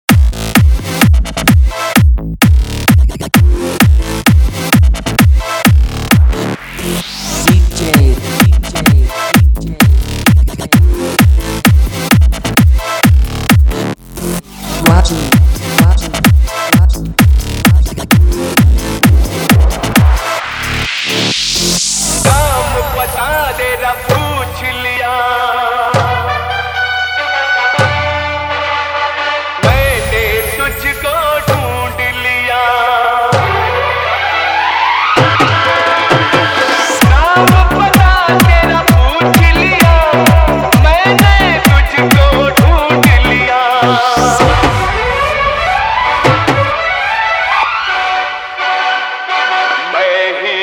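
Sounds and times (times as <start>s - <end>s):
Hindi remix song: 0.1s - 50.6s.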